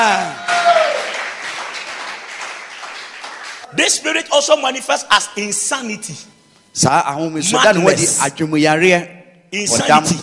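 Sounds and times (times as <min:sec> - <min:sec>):
audience clapping: 0:00.4 - 0:03.7
speech: 0:03.8 - 0:10.2.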